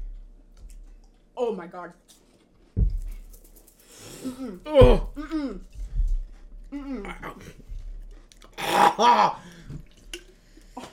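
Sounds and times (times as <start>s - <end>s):
speech: 1.4s - 2.2s, 4.2s - 5.7s, 6.7s - 7.7s, 8.6s - 9.6s
loud belch: 8.6s - 9.4s.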